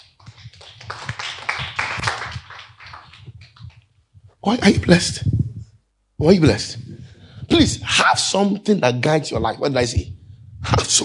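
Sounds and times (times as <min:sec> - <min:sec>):
audience clapping hands: 0:00.0 - 0:03.9
speech: 0:04.4 - 0:05.4, 0:06.2 - 0:06.8, 0:07.6 - 0:10.2, 0:10.9 - 0:11.0.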